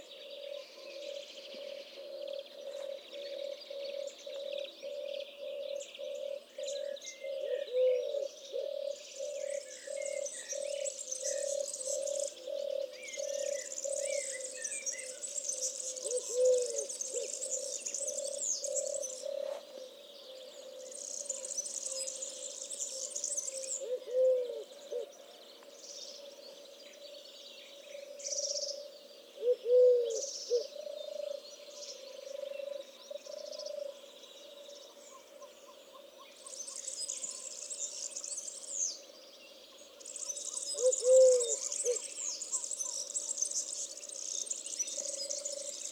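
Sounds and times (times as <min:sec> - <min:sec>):
Eurasian collared dove cooing: 0:00.0 - 0:15.3, 0:15.9 - 0:22.0, 0:23.4 - 0:25.2, 0:28.0 - 0:34.6, 0:40.5 - 0:43.0
small birds chirping: 0:00.0 - 0:45.9.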